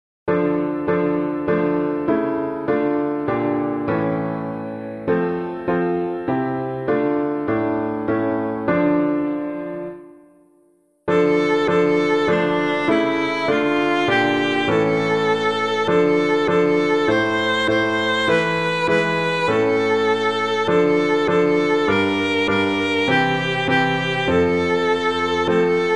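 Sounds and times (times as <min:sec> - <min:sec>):
piano playing hymns: 0:00.3 - 0:25.9.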